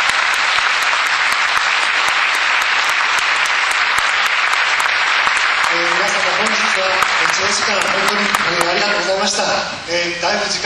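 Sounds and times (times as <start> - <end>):
audience applause: 0.0 - 9.3
speech: 6.8 - 10.6.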